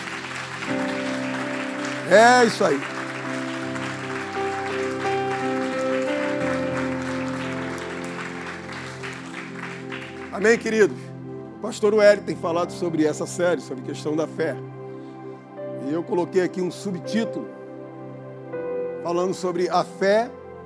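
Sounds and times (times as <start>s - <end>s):
applause: 0.0s - 11.0s
speech: 2.1s - 3.0s, 10.4s - 11.0s, 11.6s - 14.8s, 15.8s - 17.6s, 19.0s - 20.4s.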